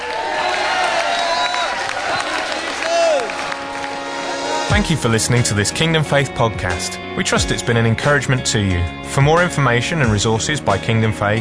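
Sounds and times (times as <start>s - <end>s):
high whoops and cries: 0.0s - 3.5s
audience shouting praise and cheering: 0.0s - 4.7s
speech: 4.8s - 11.3s.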